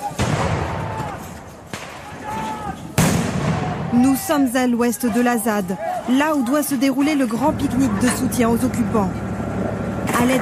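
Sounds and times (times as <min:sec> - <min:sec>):
dispersal grenade bangs thrown by gendarmes: 0:00.0 - 0:04.1
speech: 0:04.0 - 0:09.2, 0:10.2 - 0:10.4.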